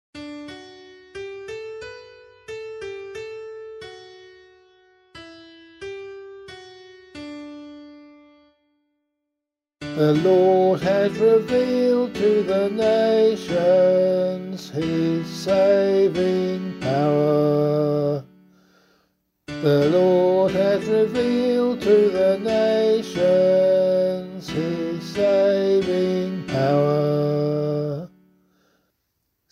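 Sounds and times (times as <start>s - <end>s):
psalm in C sung by voice: 9.8s - 18.7s, 19.5s - 28.3s.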